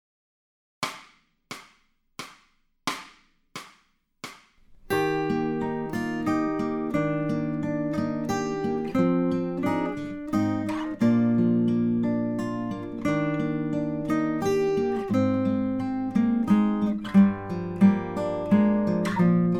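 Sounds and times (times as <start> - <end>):
acoustic guitar accompaniment: 4.6 - 19.5.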